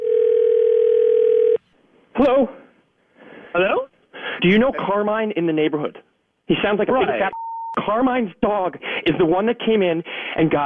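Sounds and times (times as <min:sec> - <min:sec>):
telephone dial tone: 0:00.0 - 0:01.6
speech: 0:02.2 - 0:02.6, 0:04.4 - 0:10.6.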